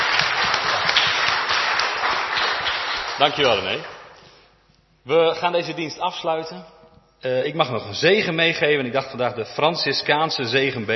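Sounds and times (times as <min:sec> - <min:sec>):
congregation applauding during a church service: 0:00.0 - 0:04.2
speech: 0:03.2 - 0:03.9, 0:05.0 - 0:10.9.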